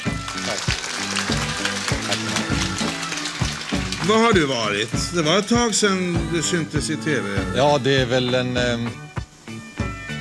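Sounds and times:
studio audience applause: 0.0s - 5.4s
speech: 0.5s - 1.4s, 4.1s - 9.0s.

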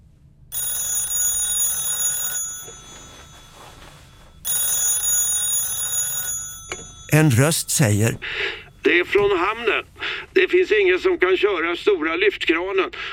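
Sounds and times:
telephone ringing: 0.5s - 8.8s
speech: 7.1s - 13.1s.

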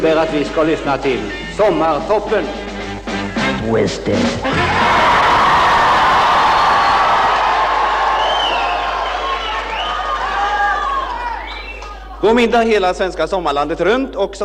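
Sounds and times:
speech: 0.0s - 2.7s, 3.5s - 5.1s, 12.2s - 14.4s
young audience cheering and shouting happily: 4.5s - 12.2s.

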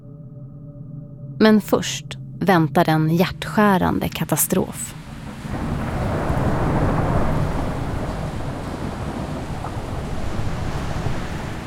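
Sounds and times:
speech: 1.4s - 5.0s
heavy hurricane wind and rain: 3.9s - 11.6s
rushing floodwater: 4.4s - 11.6s.

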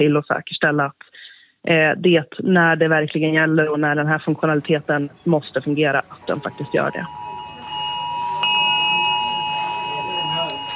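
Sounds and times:
speech: 0.0s - 7.4s
emergency alert alarm howling on phone: 6.1s - 10.7s.

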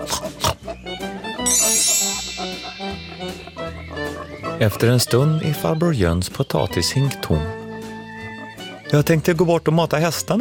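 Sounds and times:
pigs grunting: 0.0s - 0.7s
speech: 4.6s - 7.6s, 8.9s - 10.3s.

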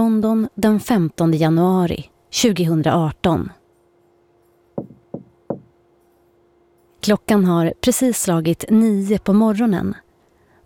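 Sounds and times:
faint steady hum: 0.0s - 10.6s
speech: 0.1s - 3.6s, 7.1s - 10.0s
cleaner knocking on a hotel room door at the Park Lane Hilton in London: 4.8s - 5.7s.

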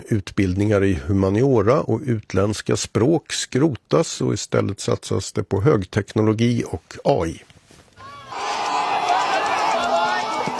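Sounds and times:
speech: 0.0s - 7.5s
Chinese students cheering after exams: 8.0s - 10.5s
Chinese students running out after exams: 8.3s - 10.5s.

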